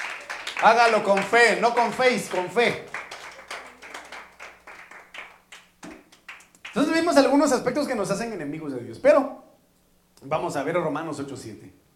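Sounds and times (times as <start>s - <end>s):
audience clapping as an offering to God: 0.0s - 7.4s
speech: 0.6s - 2.9s, 7.0s - 9.5s, 10.2s - 11.8s.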